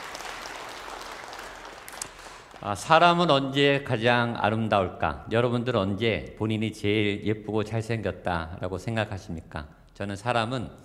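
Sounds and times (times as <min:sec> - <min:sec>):
audience applause: 0:00.0 - 0:02.8
speech: 0:02.6 - 0:10.8.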